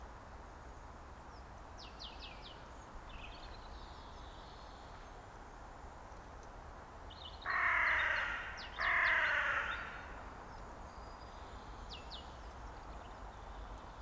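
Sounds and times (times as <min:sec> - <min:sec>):
carrion crow Corvus corone cawing: 0:07.5 - 0:10.2.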